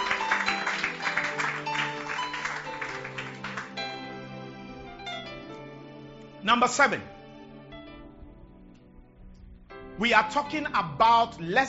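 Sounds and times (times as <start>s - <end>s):
audience clapping: 0.0s - 4.5s
speech: 6.4s - 7.2s, 10.0s - 11.6s.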